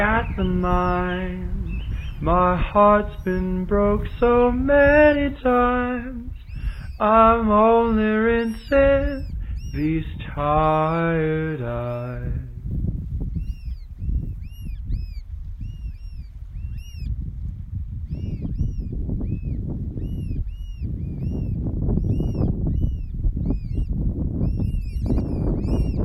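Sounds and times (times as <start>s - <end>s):
speech: 0.0s - 6.4s, 7.0s - 12.5s
birdsong: 0.0s - 12.5s, 13.2s - 17.2s, 18.0s - 26.0s
steady loud low rumble: 0.0s - 14.5s.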